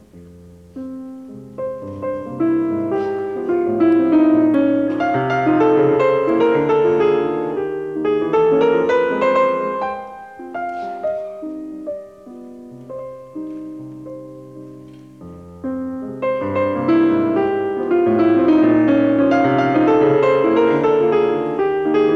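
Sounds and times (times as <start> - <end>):
piano sonata in F minor variation: 0.0 - 22.1.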